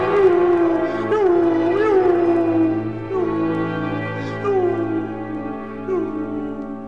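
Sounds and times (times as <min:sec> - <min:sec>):
stabbed wolf howling as it flees: 0:00.0 - 0:06.8.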